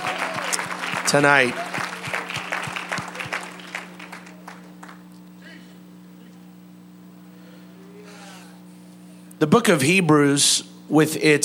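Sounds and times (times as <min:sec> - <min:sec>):
church congregation clapping hands in praise: 0:00.0 - 0:05.3
speech: 0:01.1 - 0:01.6, 0:09.4 - 0:11.4.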